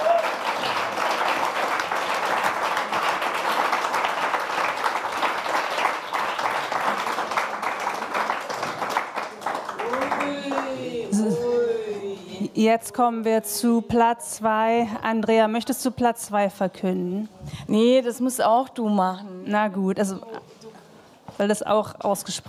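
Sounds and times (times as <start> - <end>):
applause: 0.0 - 11.3
speech: 12.6 - 20.3, 21.4 - 22.4.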